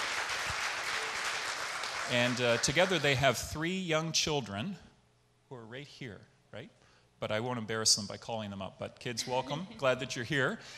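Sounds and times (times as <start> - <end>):
round of applause: 0.0 - 3.3
speech: 2.1 - 4.9, 5.7 - 10.7.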